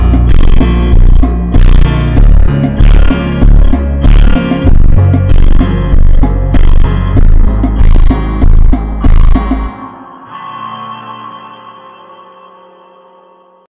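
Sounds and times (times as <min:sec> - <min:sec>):
light funk music: 0:00.0 - 0:09.8.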